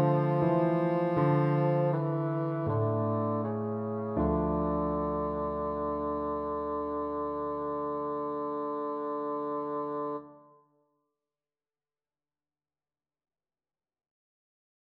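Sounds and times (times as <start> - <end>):
bassoon: 0.0 - 10.6.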